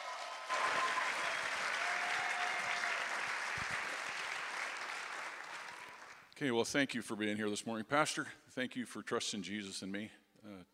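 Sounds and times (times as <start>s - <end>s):
audience applause: 0.0s - 6.3s
speech: 6.4s - 10.7s.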